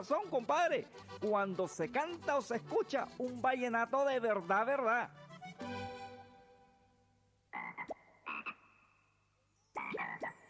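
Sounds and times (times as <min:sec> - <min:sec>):
speech: 0:00.0 - 0:05.2
frog croaking: 0:07.5 - 0:09.2, 0:09.8 - 0:10.4.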